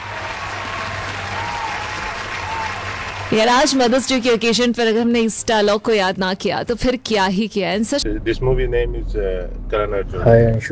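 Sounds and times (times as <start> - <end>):
audience applause: 0.0 - 5.5
speech: 3.3 - 10.7.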